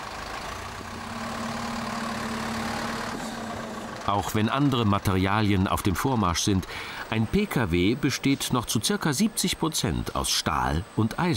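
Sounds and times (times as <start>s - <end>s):
car engine driving on a test track: 0.0s - 6.0s
speech: 4.1s - 11.3s.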